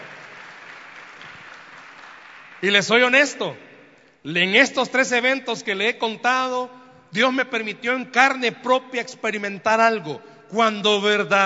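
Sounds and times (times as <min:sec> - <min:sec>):
audience applause: 0:00.0 - 0:02.8
speech: 0:02.6 - 0:03.6, 0:04.2 - 0:11.4.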